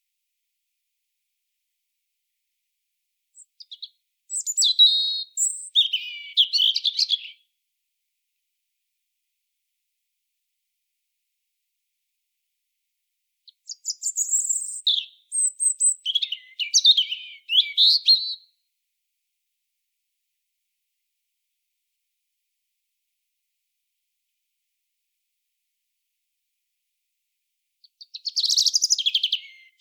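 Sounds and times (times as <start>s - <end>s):
European robin song: 3.4s - 7.4s, 13.5s - 18.5s, 27.9s - 29.7s.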